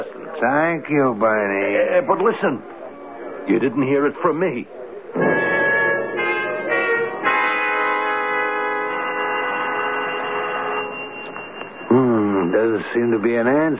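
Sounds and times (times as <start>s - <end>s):
speech: 0.4s - 2.8s, 3.4s - 4.8s, 11.9s - 13.7s
buzzy electric doorbell ringing: 5.2s - 13.6s.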